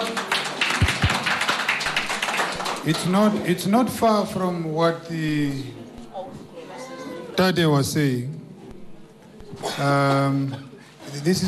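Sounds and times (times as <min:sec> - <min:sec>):
round of applause: 0:00.0 - 0:03.1
speech: 0:02.8 - 0:05.8, 0:07.4 - 0:08.4, 0:09.6 - 0:11.4.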